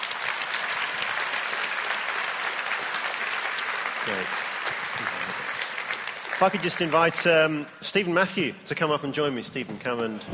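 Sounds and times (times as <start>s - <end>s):
audience applause: 0.0s - 8.2s
speech: 4.1s - 5.5s, 6.4s - 10.3s.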